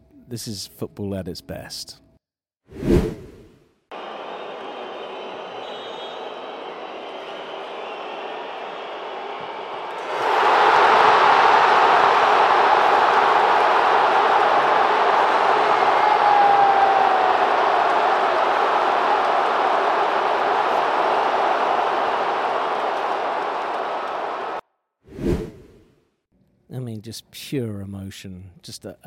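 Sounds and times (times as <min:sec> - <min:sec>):
speech: 0:00.3 - 0:02.0, 0:27.2 - 0:29.0
football stadium crowd roaring as Ronaldo misses a penalty in Portugal–Slovenia match: 0:03.9 - 0:24.6.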